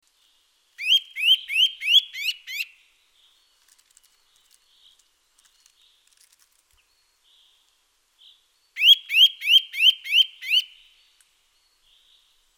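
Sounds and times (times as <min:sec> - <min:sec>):
Eurasian nuthatch Sitta europaea calling with loud rising whistles: 0:00.8 - 0:02.7, 0:08.8 - 0:10.7.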